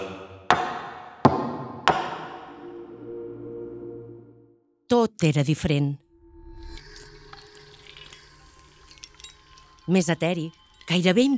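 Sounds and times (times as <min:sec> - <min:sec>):
knocks on a table: 0:00.5 - 0:02.6
speech: 0:05.0 - 0:06.0, 0:09.9 - 0:11.3.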